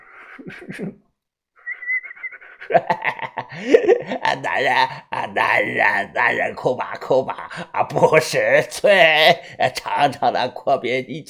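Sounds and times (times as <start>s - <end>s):
laughter: 0.4s - 1.0s, 2.5s - 5.0s
speech: 0.4s - 1.1s, 2.7s - 11.2s
man whistling: 1.6s - 2.7s.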